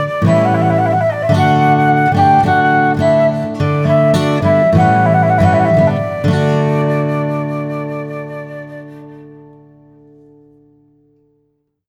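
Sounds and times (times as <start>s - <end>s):
trumpet piece: 0.0s - 7.7s.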